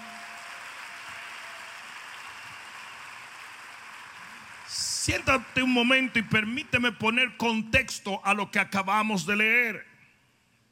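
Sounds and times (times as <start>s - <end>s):
audience applauding: 0.0s - 7.4s
speech: 5.0s - 9.9s.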